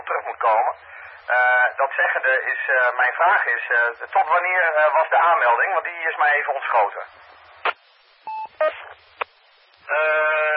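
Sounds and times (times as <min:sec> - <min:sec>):
speech: 0:00.3 - 0:07.4, 0:09.9 - 0:10.4
beep: 0:08.3 - 0:08.8.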